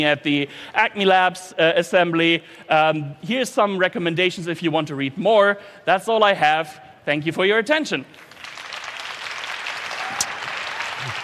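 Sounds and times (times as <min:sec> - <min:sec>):
speech: 0:00.0 - 0:08.3
audience applause: 0:08.2 - 0:11.2.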